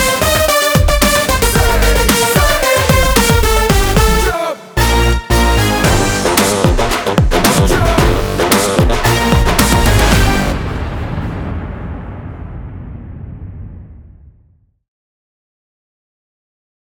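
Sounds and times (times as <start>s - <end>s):
theme music: 0.0s - 12.5s.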